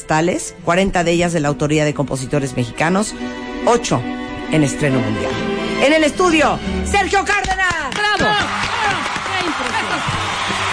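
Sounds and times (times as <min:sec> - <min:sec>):
speech: 0:00.0 - 0:09.0
steady applause of many hands clapping: 0:07.4 - 0:10.7.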